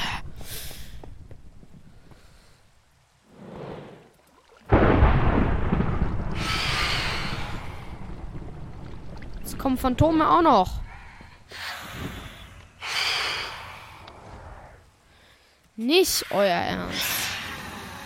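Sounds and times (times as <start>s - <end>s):
thunderstorm thunder: 4.7s - 11.1s
speech: 9.6s - 10.8s, 15.8s - 17.2s.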